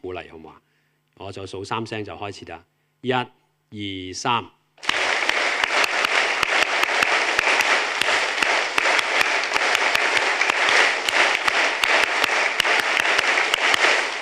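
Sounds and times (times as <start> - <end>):
speech: 0.0 - 5.0
audience clapping hands in unison: 4.8 - 14.2.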